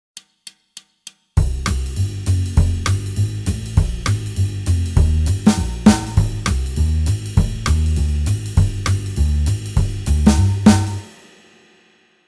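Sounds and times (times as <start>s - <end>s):
jazz guitar backing: 1.4s - 11.1s.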